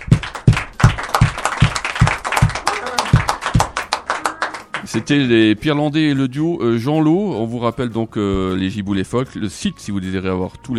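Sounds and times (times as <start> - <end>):
audience clapping in a steady rhythmic beat: 0.0 - 5.4
speech: 5.0 - 10.7.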